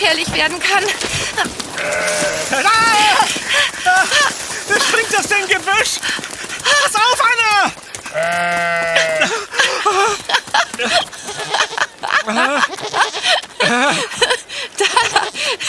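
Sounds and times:
speech: 0:00.0 - 0:04.3, 0:04.9 - 0:08.9
laughter: 0:00.0 - 0:07.8, 0:08.6 - 0:15.6
billy goat bleating: 0:00.2 - 0:03.4, 0:08.1 - 0:14.2.

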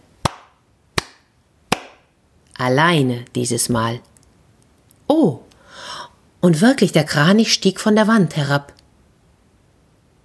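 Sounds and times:
hands clapping: 0:00.2 - 0:02.0
speech: 0:02.6 - 0:04.1, 0:05.2 - 0:05.4, 0:06.4 - 0:08.8.

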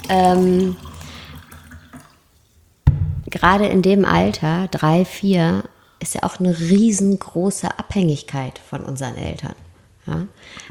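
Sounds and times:
water pouring into a glass: 0:00.0 - 0:04.5
speech: 0:00.1 - 0:00.9, 0:03.4 - 0:10.6.

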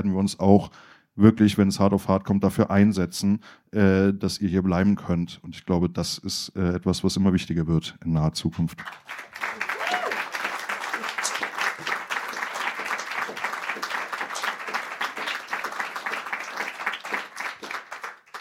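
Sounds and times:
speech: 0:00.0 - 0:09.6
crowd applause: 0:08.8 - 0:18.3.

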